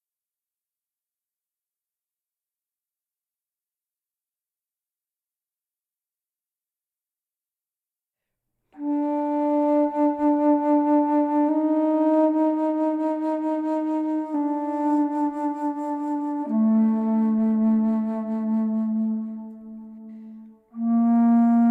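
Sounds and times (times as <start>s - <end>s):
bass flute: 8.8s - 21.6s.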